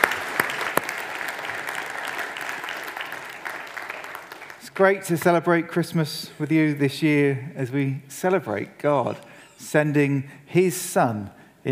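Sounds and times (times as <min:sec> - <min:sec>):
audience applauding the band: 0:00.0 - 0:05.2
speech: 0:04.8 - 0:11.6.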